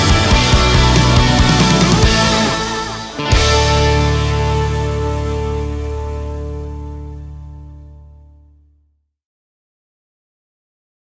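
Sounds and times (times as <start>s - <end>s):
instrumental music: 0.0s - 8.5s.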